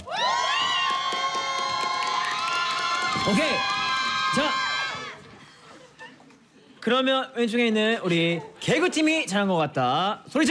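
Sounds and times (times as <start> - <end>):
crowd cheering and shouting after a dance performance at a live show: 0.0 - 5.4
speech: 3.3 - 4.6, 6.8 - 10.5.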